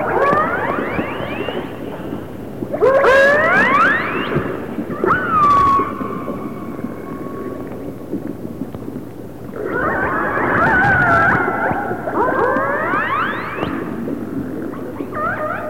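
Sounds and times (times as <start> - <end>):
resident orca of the AR clan: 0.0 - 8.0, 9.5 - 15.6.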